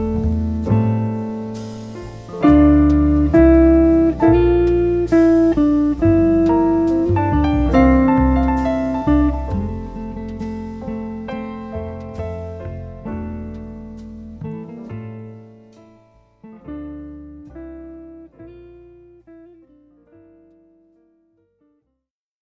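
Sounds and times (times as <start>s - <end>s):
trio or quartet playing: 0.0s - 14.5s.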